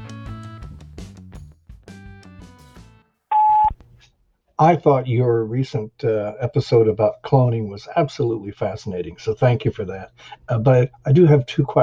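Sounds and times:
voicemail playback beep: 3.3 - 3.7
voicemail playback short electronic tones: 3.3 - 3.7
speech: 4.6 - 11.8.

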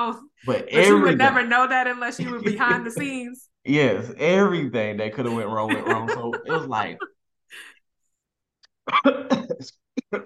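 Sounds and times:
speech: 0.0 - 7.7, 8.9 - 10.2
laughter: 2.2 - 3.2, 5.2 - 7.1
person coughing after choking on saliva: 8.9 - 10.2.

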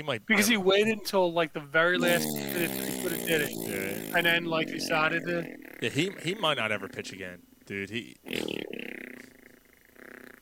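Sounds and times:
speech: 0.0 - 8.8
voice imitating lawnmower failing to start: 1.8 - 7.8.

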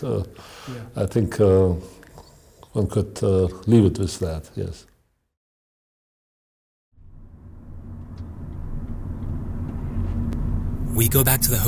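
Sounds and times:
speech: 0.0 - 2.0, 2.8 - 4.9, 11.0 - 11.6
taxi engine rumble and road noise heard from inside the cab: 7.0 - 11.6.

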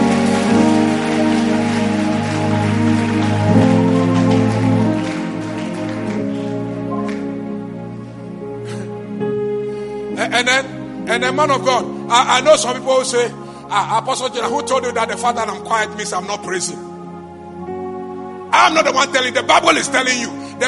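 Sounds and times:
crowd clapping: 0.0 - 7.6
sustained keyboard or organ chords: 0.0 - 20.6
speech: 10.4 - 16.9, 18.5 - 20.6.

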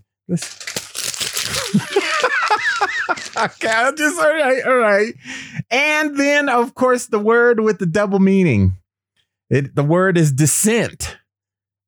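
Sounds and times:
speech: 0.3 - 0.7, 3.4 - 8.8, 9.5 - 11.2
paper being crumpled up: 0.3 - 4.2
laughter: 1.6 - 5.1.

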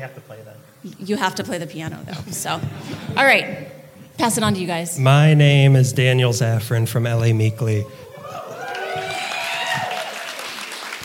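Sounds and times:
speech: 0.0 - 8.1
faint cheering voices: 7.2 - 11.0
audience applause: 8.0 - 11.0.

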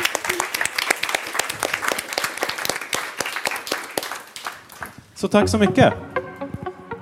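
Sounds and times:
audience applause: 0.0 - 5.0
speech: 5.2 - 6.1.

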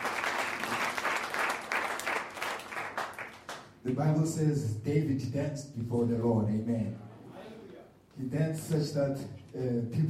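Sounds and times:
audience hand clapping: 0.0 - 3.9
speech: 3.8 - 7.0, 8.2 - 10.0.

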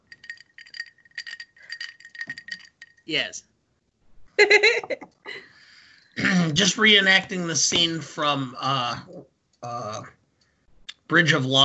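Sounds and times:
ice clinking in a drink glass: 0.0 - 3.0
speech: 3.1 - 3.5, 4.4 - 5.4, 6.3 - 10.2, 11.1 - 11.6.

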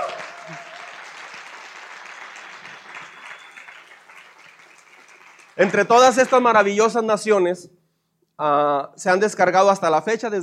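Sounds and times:
audience applause: 0.0 - 6.7
speech: 5.6 - 7.8, 8.4 - 10.4.

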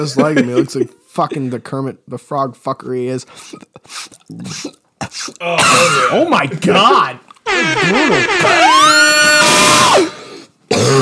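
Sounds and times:
speech: 0.0 - 10.9
high-pitched inhaled scream into microphone: 7.5 - 10.5.

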